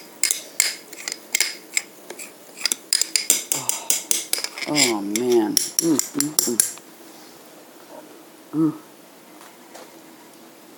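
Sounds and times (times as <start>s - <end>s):
spoon stirring a thick mixture topped with nutmeg in a bowl: 0.2s - 6.8s
speech: 4.7s - 6.7s, 8.5s - 8.9s.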